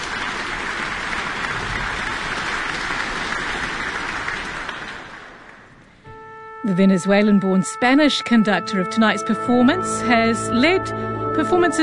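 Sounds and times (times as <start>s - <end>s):
concert audience applause: 0.0s - 5.9s
speech: 6.6s - 11.8s.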